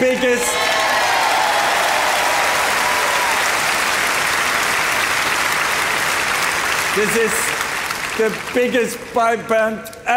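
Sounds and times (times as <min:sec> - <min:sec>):
audience applause: 0:00.0 - 0:09.2
speech: 0:07.0 - 0:07.5, 0:08.2 - 0:10.1.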